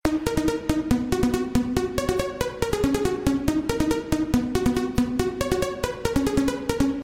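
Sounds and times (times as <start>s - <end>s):
techno ringtone: 0.0s - 7.0s.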